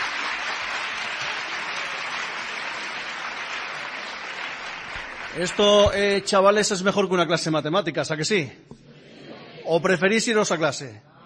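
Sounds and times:
loud applause from large crowd of schoolchildren: 0:00.0 - 0:06.4
speech: 0:05.3 - 0:08.8, 0:09.7 - 0:11.1.

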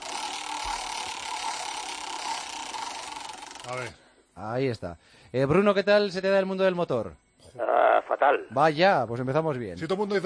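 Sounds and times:
roulette wheel spinning in a quiz game: 0:00.0 - 0:03.9
speech: 0:03.7 - 0:10.2.

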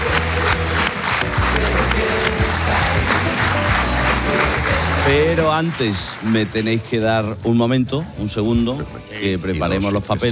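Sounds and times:
audience applause welcoming a singer: 0:00.0 - 0:06.9
speech: 0:05.1 - 0:10.2.

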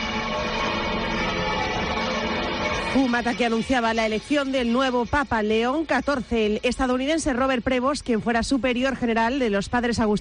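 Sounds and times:
cathedral church bells of Málaga pealing: 0:00.0 - 0:07.0
speech: 0:02.9 - 0:10.1.

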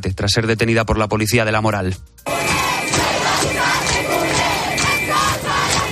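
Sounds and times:
speech: 0:00.0 - 0:02.4
crowd chanting protest slogans: 0:02.3 - 0:05.8.

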